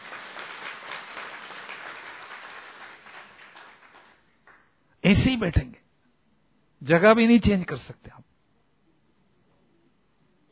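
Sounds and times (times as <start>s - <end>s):
audience clapping: 0.0s - 4.8s
speech: 5.1s - 5.7s, 6.9s - 8.2s.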